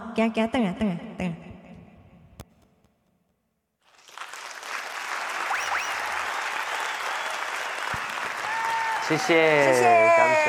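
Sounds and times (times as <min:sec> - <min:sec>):
speech: 0:00.2 - 0:01.5, 0:09.1 - 0:10.4
audience applause: 0:03.9 - 0:10.4.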